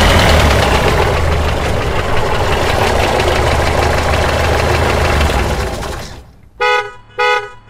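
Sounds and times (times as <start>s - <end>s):
bus stop ambience: 0.0s - 7.6s.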